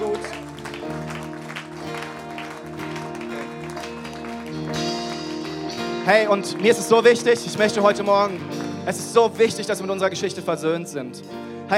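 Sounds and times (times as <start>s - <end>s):
audience applause: 0.0s - 9.4s
instrumental music holding long chords: 0.0s - 11.7s
speech: 6.1s - 11.7s.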